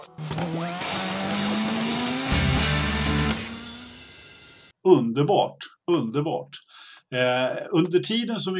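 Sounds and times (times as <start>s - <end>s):
jingle and racing car engine drone: 0.0s - 4.6s
speech: 4.9s - 8.5s.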